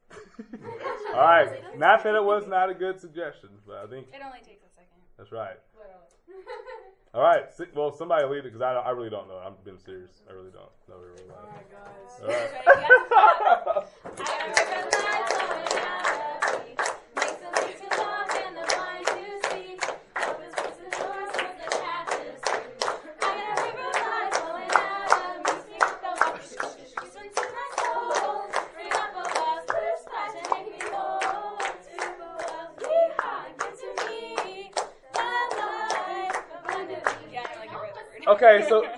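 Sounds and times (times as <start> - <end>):
laughter: 0.1 - 2.0, 6.3 - 7.0, 12.2 - 16.4, 36.9 - 38.9
speech: 0.4 - 16.0, 38.4 - 38.9
group of people clapping hands: 13.8 - 38.8.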